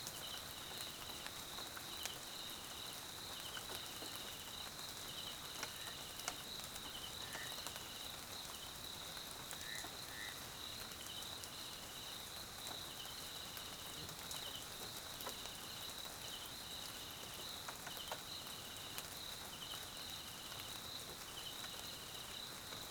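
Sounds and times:
South African crickets chirping at night: 0.2s - 22.8s.

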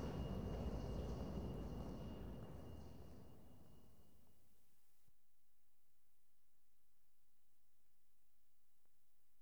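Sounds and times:
London Underground trains: 0.0s - 4.4s.

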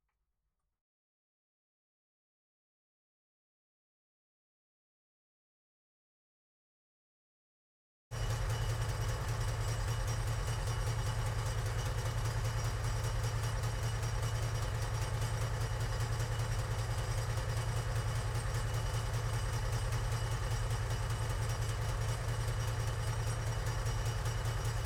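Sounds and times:
Infanterikanonvagn 103 assault gun rear engine idling, recorded on board: 8.2s - 24.8s.

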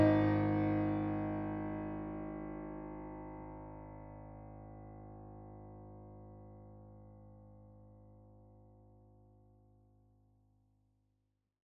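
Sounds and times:
pensive piano soundtrack music: 0.0s - 4.4s.

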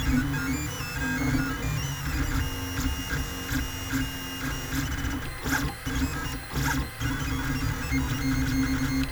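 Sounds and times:
Lulzbot mini 3D printer running a sequence: 0.0s - 9.0s.

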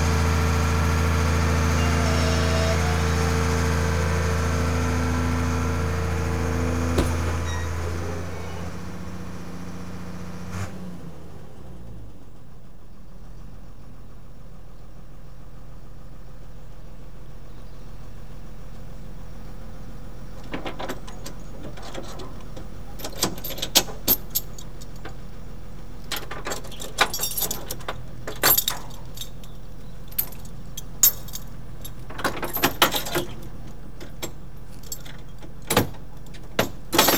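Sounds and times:
refuse skip truck approaching and delivering: 0.0s - 10.5s, 18.9s - 37.1s.

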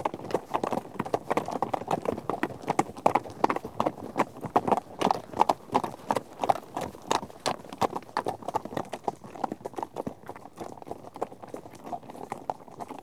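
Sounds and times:
herd of horses hoofbeats on a trek: 0.0s - 13.0s.

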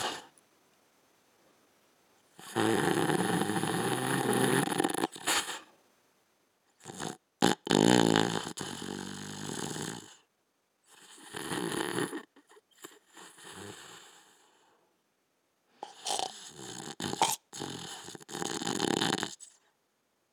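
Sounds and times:
man snoring: 2.4s - 5.2s, 6.8s - 10.2s, 11.1s - 12.3s, 15.8s - 19.4s.

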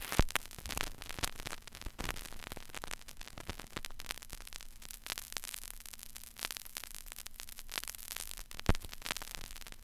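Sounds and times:
vinyl crackle: 0.0s - 9.8s.

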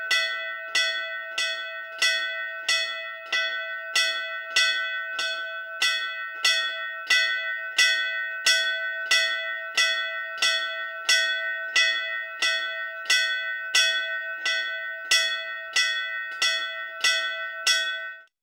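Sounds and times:
Indian religious temple bell ringing: 0.0s - 18.3s.

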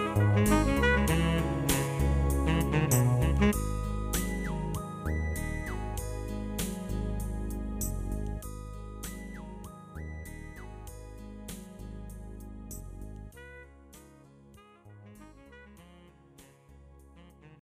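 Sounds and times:
ballad: 0.0s - 12.4s.

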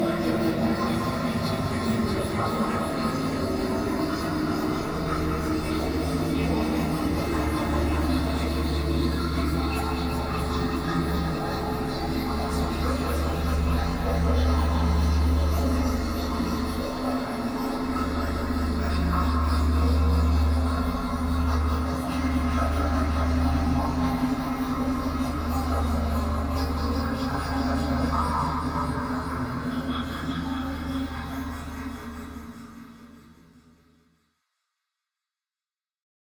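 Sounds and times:
sci-fi drone atmosphere: 0.0s - 33.2s.

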